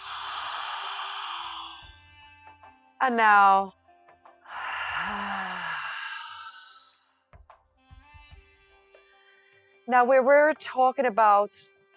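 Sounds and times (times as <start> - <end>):
deep breath in during a guided relaxation exercise: 0.0 - 2.0, 4.5 - 7.0
speech: 3.0 - 3.8, 9.9 - 11.8.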